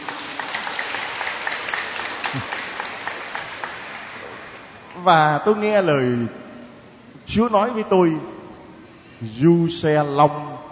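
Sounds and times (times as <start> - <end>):
audience applauding: 0.0 - 4.9
speech: 2.3 - 2.6, 5.0 - 6.4, 7.3 - 8.4, 9.2 - 10.5.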